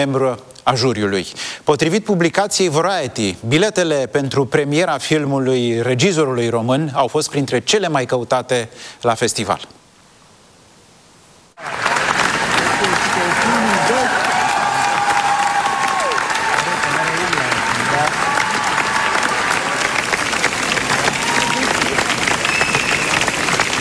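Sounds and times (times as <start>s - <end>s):
speech: 0.0s - 9.8s
standing ovation applause at film premiere: 11.6s - 23.7s.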